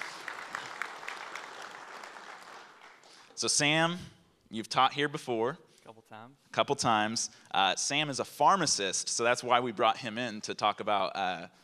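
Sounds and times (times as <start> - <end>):
audience applause: 0.0 - 3.4
speech: 3.4 - 11.6.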